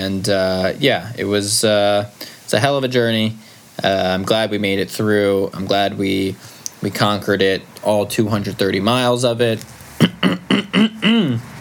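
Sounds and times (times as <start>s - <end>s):
speech: 0.0s - 11.5s
throat clearing: 10.0s - 11.5s.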